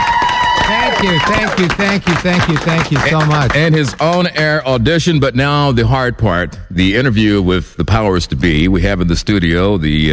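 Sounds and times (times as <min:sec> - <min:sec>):
whooping and cheering: 0:00.0 - 0:01.9
studio applause: 0:00.0 - 0:04.7
speech: 0:01.0 - 0:10.1.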